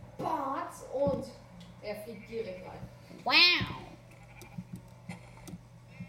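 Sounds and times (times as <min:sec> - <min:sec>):
speech: 0:00.2 - 0:03.8
video game sheep bleating: 0:02.0 - 0:04.8.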